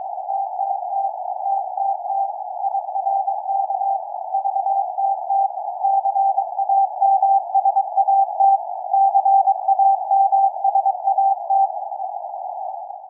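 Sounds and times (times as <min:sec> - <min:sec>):
morse code signal on 145 MHz: 0:00.3 - 0:12.2.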